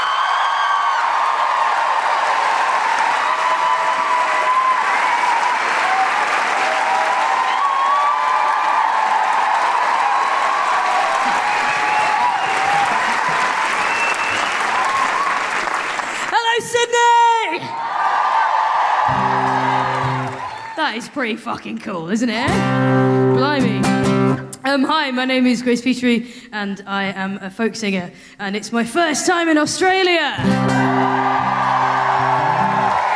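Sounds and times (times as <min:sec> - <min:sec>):
Sydney audience woohooing: 0:00.0 - 0:15.4, 0:17.6 - 0:20.8, 0:30.4 - 0:33.1
Sydney audience clapping at a live feminist comedy show: 0:00.0 - 0:21.9, 0:30.4 - 0:33.1
speech: 0:20.9 - 0:23.9, 0:24.7 - 0:31.4.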